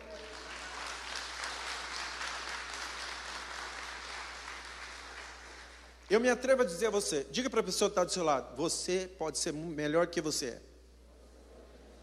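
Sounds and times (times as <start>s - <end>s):
audience applause: 0.0s - 5.9s
speech: 6.1s - 10.7s.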